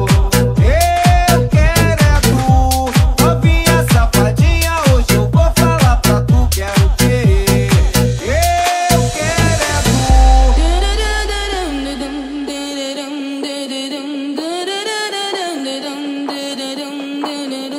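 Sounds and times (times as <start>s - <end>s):
mega funk music: 0.0s - 12.9s.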